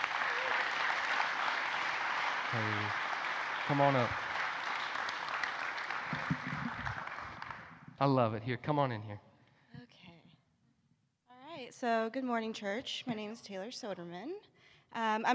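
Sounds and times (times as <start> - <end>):
church crowd applauding in a large room: 0.0 - 7.9
speech: 2.5 - 3.0, 3.7 - 4.3, 8.0 - 9.3, 11.8 - 15.3.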